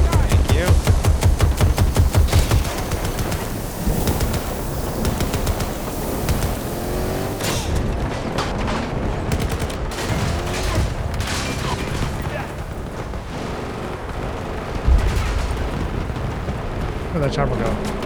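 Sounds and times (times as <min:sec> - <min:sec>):
players talking: 0:00.0 - 0:08.0, 0:10.0 - 0:14.9, 0:15.6 - 0:18.0
video game gunfire with rapid shots and blasts: 0:00.0 - 0:18.0.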